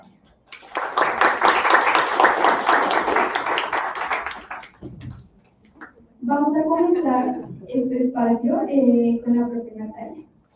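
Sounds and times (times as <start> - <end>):
audience applause: 0.5 - 5.0
brief low murmur: 4.7 - 10.3
speech: 7.0 - 10.3.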